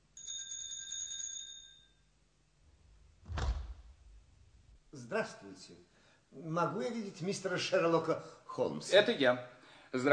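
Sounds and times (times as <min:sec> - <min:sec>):
doorbell ringing: 0:00.2 - 0:02.0
speech: 0:05.0 - 0:10.1.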